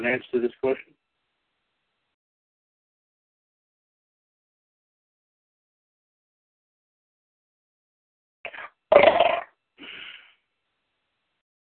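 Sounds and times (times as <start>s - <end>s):
speech: 0.0s - 1.0s
belching: 8.5s - 10.0s.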